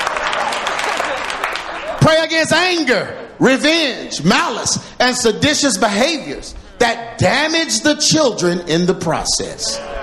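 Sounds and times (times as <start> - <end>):
audience clapping: 0.0 - 2.0
speech: 2.0 - 10.0.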